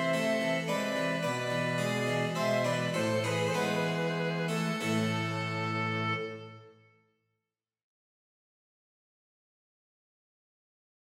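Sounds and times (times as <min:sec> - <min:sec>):
harpsichord playing an air: 0:00.0 - 0:06.6
cello playing an air: 0:00.0 - 0:06.9
violin playing an air: 0:00.0 - 0:06.9
flute playing an air: 0:00.0 - 0:07.0.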